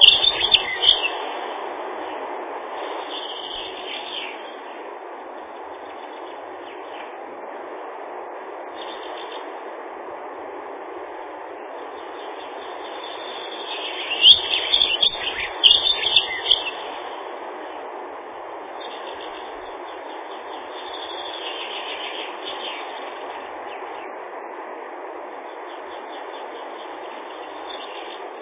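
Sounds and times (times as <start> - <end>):
Dunnock song, Prunella modularis, thin high twittering: 0.0 - 1.4, 2.8 - 4.8, 5.6 - 7.2, 8.7 - 9.6, 11.8 - 17.8, 18.7 - 24.2, 25.4 - 28.3.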